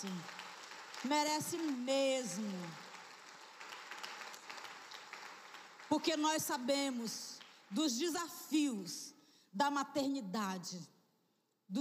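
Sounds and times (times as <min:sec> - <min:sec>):
speech: 0:00.0 - 0:00.4, 0:01.0 - 0:02.8, 0:05.9 - 0:10.9
applause from a group: 0:00.0 - 0:08.0.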